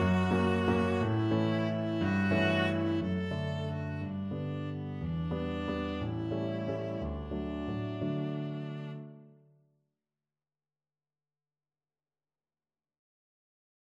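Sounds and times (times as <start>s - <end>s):
viola playing a waltz: 0.0s - 9.3s.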